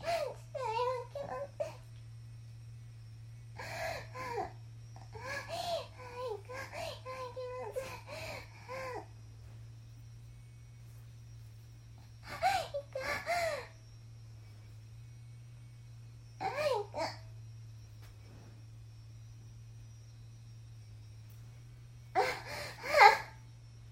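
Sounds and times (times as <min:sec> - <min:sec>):
22-year-old woman moaning and climaxing: 0:00.0 - 0:01.8, 0:03.6 - 0:09.1, 0:12.1 - 0:13.8, 0:16.4 - 0:17.2, 0:22.2 - 0:23.4.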